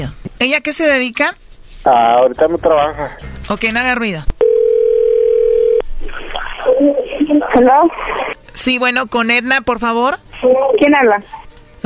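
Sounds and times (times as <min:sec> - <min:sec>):
speech: 0:00.0 - 0:04.4, 0:06.8 - 0:11.8
telephone dial tone during outgoing call: 0:04.4 - 0:05.8.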